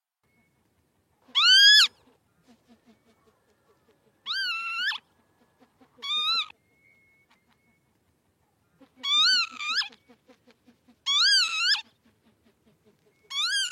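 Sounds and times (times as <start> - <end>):
Northern lapwing giving rising slurred cries: 1.3 - 2.0, 4.2 - 5.0, 5.9 - 6.5, 9.0 - 9.9, 11.1 - 11.8, 13.3 - 13.7.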